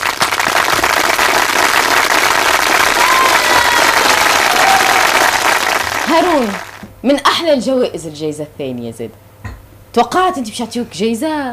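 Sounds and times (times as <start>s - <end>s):
audience applause for a prize winner at an awards event: 0.0s - 6.8s
cheering: 0.0s - 6.8s
speech: 6.2s - 9.3s, 10.0s - 11.5s.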